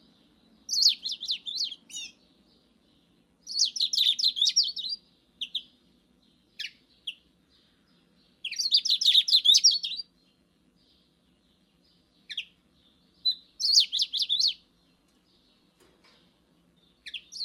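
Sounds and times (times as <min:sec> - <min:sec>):
Eurasian bullfinch twittering: 0:00.7 - 0:02.2, 0:03.5 - 0:05.7, 0:08.4 - 0:10.0, 0:13.2 - 0:14.6.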